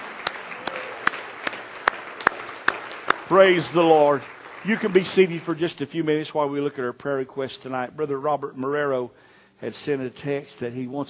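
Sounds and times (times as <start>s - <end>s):
audience rhythmic clapping: 0.0s - 5.9s
speech: 3.3s - 11.0s.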